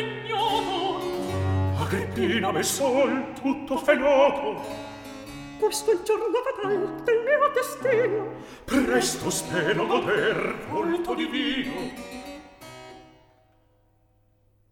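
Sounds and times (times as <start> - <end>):
recitative singing: 0.0 - 4.7, 5.6 - 12.0.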